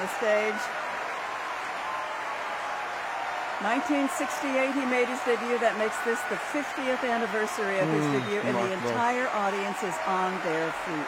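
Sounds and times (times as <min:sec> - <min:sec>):
speech: 0:00.0 - 0:00.8, 0:03.6 - 0:11.0
large audience applauding an opera singer: 0:00.0 - 0:11.0.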